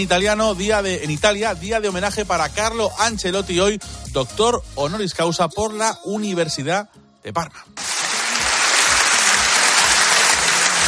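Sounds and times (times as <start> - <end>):
speech: 0.0 - 7.8
audience ovation applause: 7.8 - 10.8.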